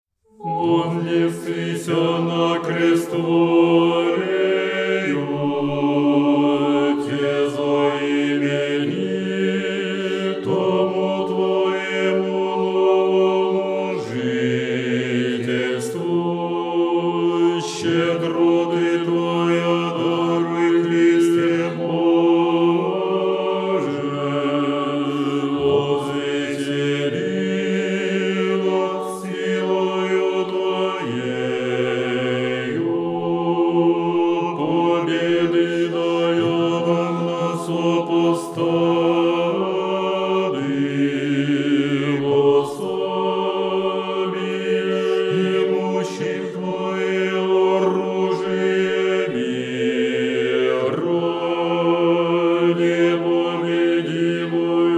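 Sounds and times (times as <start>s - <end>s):
bass choir chanting: 0.4s - 54.9s.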